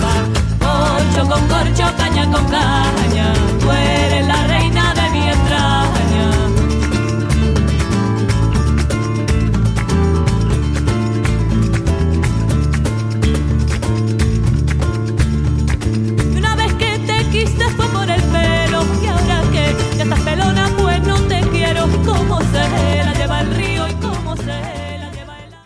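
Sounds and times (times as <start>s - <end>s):
band playing rumba: 0.0s - 25.6s.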